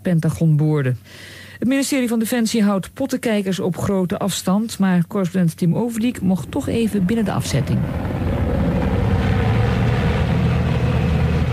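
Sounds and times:
speech: 0:00.0 - 0:08.3
military helicopter flying over: 0:05.9 - 0:11.5.

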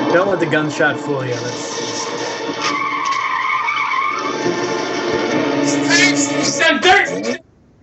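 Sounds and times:
speech: 0:00.1 - 0:01.8, 0:06.7 - 0:07.4
car tires squealing on snow and dirt: 0:01.7 - 0:07.4.

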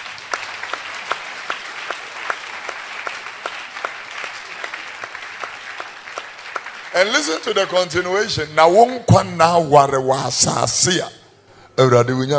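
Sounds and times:
audience applause: 0:00.0 - 0:08.3
speech: 0:07.0 - 0:11.2, 0:11.8 - 0:12.3.

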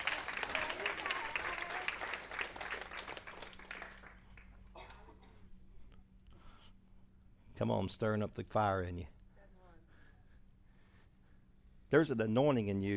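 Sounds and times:
audience clapping: 0:00.0 - 0:04.7
speech: 0:07.6 - 0:09.2, 0:11.9 - 0:12.9.

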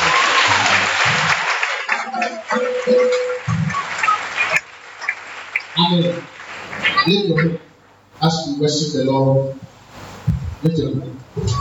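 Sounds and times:
audience clapping in praise: 0:00.0 - 0:07.6
speech: 0:02.2 - 0:03.2, 0:05.8 - 0:06.3, 0:07.1 - 0:09.6, 0:10.6 - 0:11.5.

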